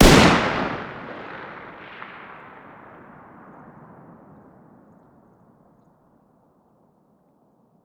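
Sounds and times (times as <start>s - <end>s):
distant gunfire: 0.0s - 4.6s.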